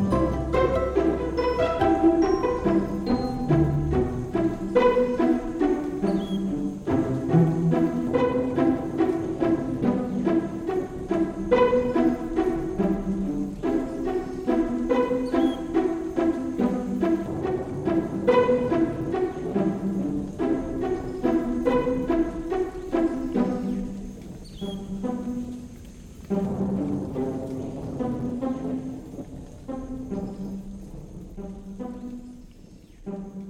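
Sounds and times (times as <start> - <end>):
stringed rain: 0.0 - 33.4.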